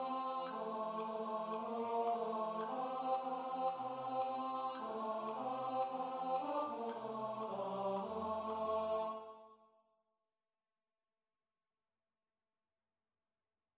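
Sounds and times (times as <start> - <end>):
tenor study: 0.0 - 9.5.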